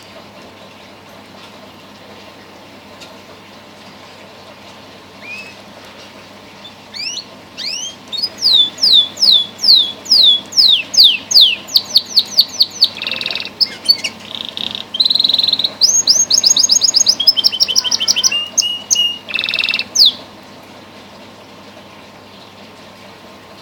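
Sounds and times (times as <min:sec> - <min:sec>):
canary singing: 0:05.2 - 0:05.7, 0:06.6 - 0:20.3.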